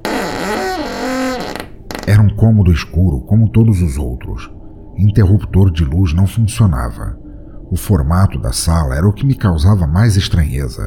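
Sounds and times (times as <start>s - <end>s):
high-pitched creak of door opening: 0.0s - 2.5s
speech: 2.1s - 10.8s.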